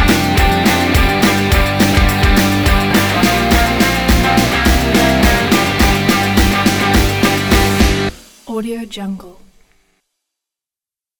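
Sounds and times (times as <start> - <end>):
upbeat energetic indie rock: 0.0 - 8.1.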